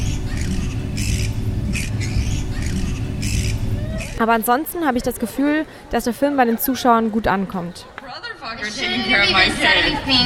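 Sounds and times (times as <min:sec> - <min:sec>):
bats screeching at night: 0:00.0 - 0:04.2
speech: 0:04.2 - 0:07.9, 0:08.5 - 0:10.2.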